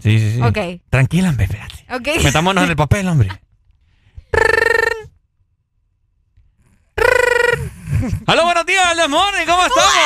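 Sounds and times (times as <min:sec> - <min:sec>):
speech: 0:00.0 - 0:03.4, 0:08.0 - 0:10.0
voice imitating a telephone ringing: 0:04.3 - 0:05.1, 0:07.0 - 0:07.7.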